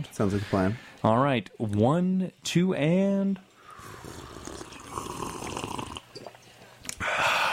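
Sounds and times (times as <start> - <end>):
speech: 0.0 - 3.5
sipping coffee: 3.6 - 6.4.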